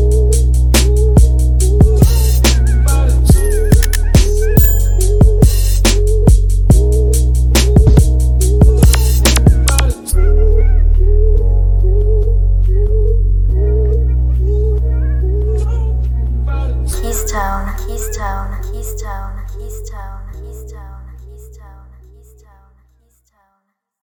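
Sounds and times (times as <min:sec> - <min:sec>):
instrumental music: 0:00.0 - 0:19.0.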